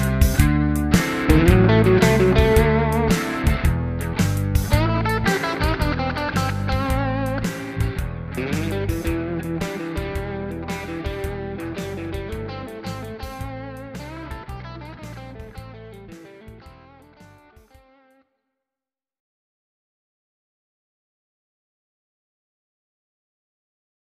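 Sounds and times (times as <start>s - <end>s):
classic blues music: 0.0s - 18.1s.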